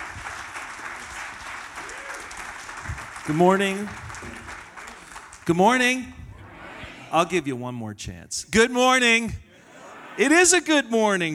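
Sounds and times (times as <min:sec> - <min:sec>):
church congregation applauding a guest speaker: 0:00.0 - 0:06.0
speech: 0:03.2 - 0:04.0, 0:05.5 - 0:06.2, 0:07.1 - 0:09.4, 0:10.2 - 0:11.3.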